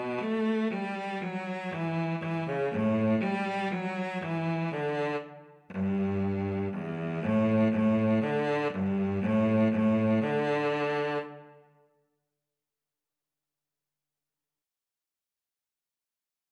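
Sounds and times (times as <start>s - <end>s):
minuet violin and cello duet: 0.0s - 11.5s.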